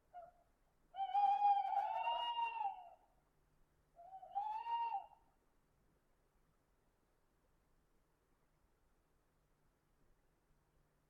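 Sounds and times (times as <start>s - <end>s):
owl hooting: 1.0s - 3.0s, 4.0s - 5.2s.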